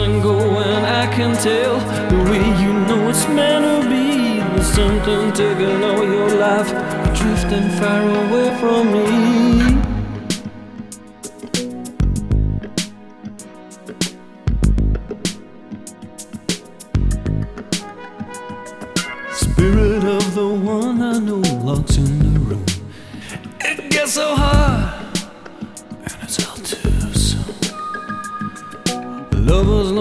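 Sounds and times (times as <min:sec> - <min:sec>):
rock music: 0:00.0 - 0:29.9.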